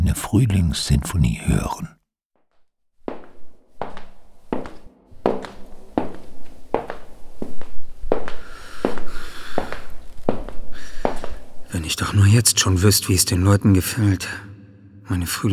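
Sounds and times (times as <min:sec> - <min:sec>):
speech: 0:00.1 - 0:02.0, 0:11.9 - 0:14.5, 0:15.1 - 0:15.5
footsteps walking through an empty hall: 0:03.1 - 0:11.7.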